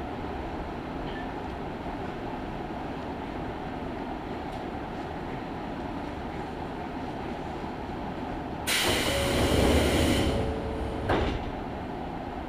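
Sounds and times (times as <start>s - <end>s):
Izuhakone Railway Daiyuzan Line train rumbling: 0.0s - 12.4s
loud hiss: 8.7s - 10.5s.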